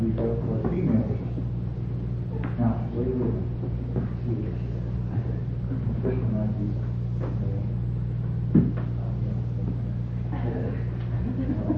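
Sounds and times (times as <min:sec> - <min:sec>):
low hum: 0:00.0 - 0:11.7
dull thud of box being opened: 0:08.5 - 0:08.9
laughter: 0:10.3 - 0:11.7.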